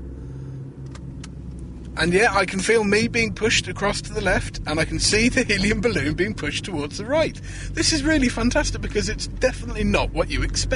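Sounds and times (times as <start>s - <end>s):
car engine drone while driving and turning sharply: 0.0s - 10.7s
speech: 2.0s - 10.7s.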